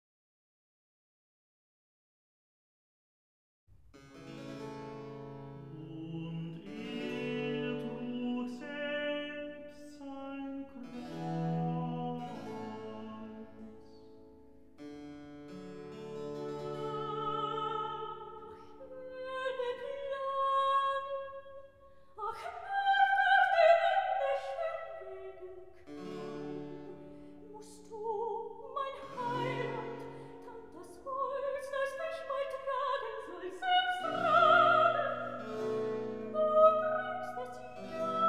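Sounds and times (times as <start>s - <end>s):
recitative singing: 5.6s - 14.0s, 16.2s - 38.2s.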